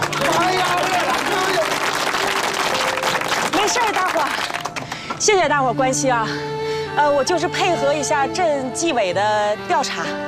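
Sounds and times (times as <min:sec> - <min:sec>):
crowd clapping: 0:00.0 - 0:05.2
speech: 0:05.3 - 0:10.2.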